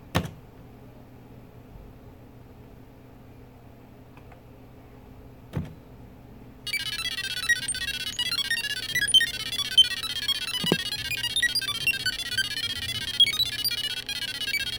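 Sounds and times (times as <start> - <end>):
TRS-80 computer random beeps: 6.7 - 14.7.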